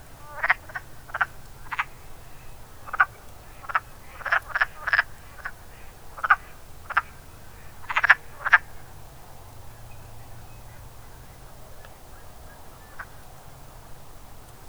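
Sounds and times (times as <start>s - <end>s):
wood frog chuckling calls: 0.1s - 8.9s.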